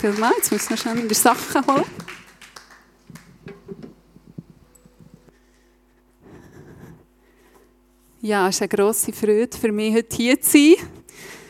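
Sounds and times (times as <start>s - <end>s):
speech: 0.0s - 2.2s, 8.2s - 11.4s
audience applause: 0.0s - 3.6s.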